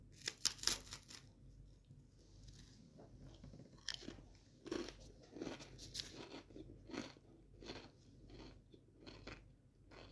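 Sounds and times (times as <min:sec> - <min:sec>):
crunchy sandwich eating: 0:00.1 - 0:01.3, 0:03.6 - 0:10.1.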